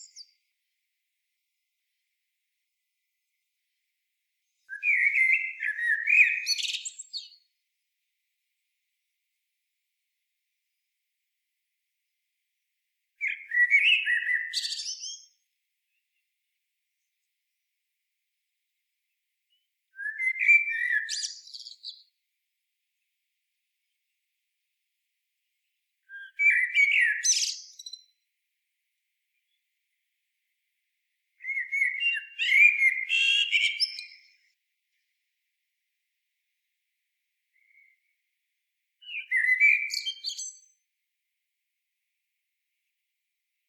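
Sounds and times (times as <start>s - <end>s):
common blackbird song: 0.0s - 9.5s, 12.2s - 41.1s.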